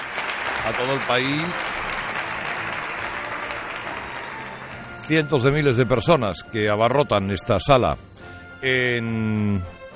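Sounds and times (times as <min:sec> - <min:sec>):
studio audience applause on a live morning show in Málaga: 0:00.0 - 0:05.3
speech: 0:00.6 - 0:01.7, 0:05.1 - 0:09.9.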